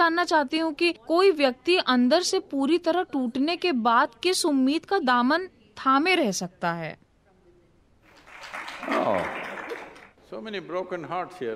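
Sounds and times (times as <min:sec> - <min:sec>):
speech: 0:00.0 - 0:07.0, 0:08.5 - 0:09.5, 0:10.3 - 0:11.5
audience applause: 0:08.1 - 0:10.2.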